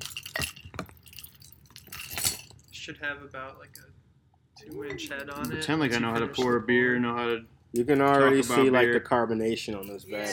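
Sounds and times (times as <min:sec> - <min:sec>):
sample pint glasses clinking: 0:00.0 - 0:02.7, 0:04.6 - 0:06.6, 0:09.7 - 0:10.3
speech: 0:02.9 - 0:04.0, 0:04.6 - 0:10.3.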